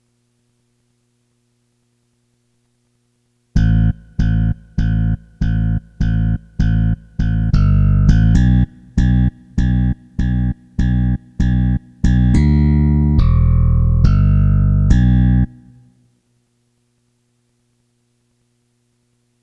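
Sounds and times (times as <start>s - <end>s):
bass: 3.6s - 15.9s.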